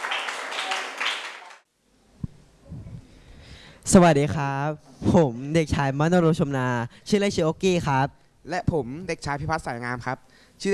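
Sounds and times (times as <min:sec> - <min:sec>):
audience clapping: 0:00.0 - 0:01.6
speech: 0:03.9 - 0:10.7.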